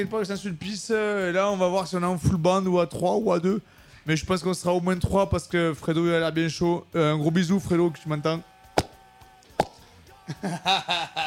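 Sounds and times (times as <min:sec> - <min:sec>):
speech: 0:00.0 - 0:08.5, 0:10.4 - 0:11.2
red wine bottle opened at a skatepark: 0:08.8 - 0:09.8
laughter: 0:10.2 - 0:11.2.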